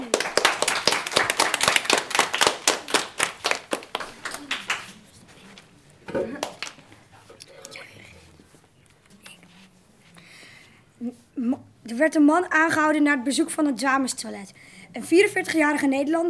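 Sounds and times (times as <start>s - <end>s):
applause: 0.0s - 5.2s, 6.4s - 6.8s
speech: 6.2s - 6.5s, 11.4s - 16.2s.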